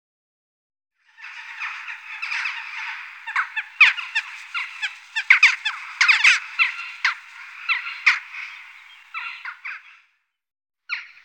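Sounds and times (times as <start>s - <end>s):
western jackdaw chattering and calling: 1.2s - 9.9s.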